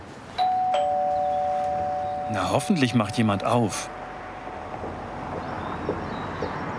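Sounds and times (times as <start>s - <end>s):
doorbell ringing: 0.4s - 6.6s
speech: 2.3s - 4.0s.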